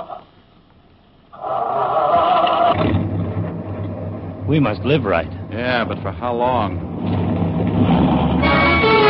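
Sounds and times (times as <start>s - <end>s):
truck engine rumbling as it pulls away: 0.2s - 9.0s
truck engine cranking and starting: 1.4s - 9.0s
speech: 4.5s - 7.2s.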